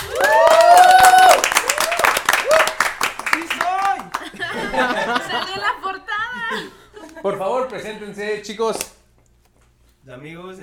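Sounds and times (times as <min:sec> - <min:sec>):
audience applause: 0:00.0 - 0:05.5
laughter: 0:04.0 - 0:08.2
speech: 0:07.4 - 0:08.9, 0:10.2 - 0:10.6.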